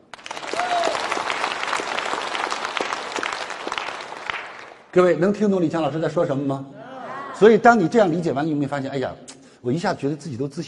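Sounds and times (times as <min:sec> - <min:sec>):
audience applause: 0:00.0 - 0:04.9
speech: 0:05.0 - 0:06.8, 0:07.4 - 0:10.6.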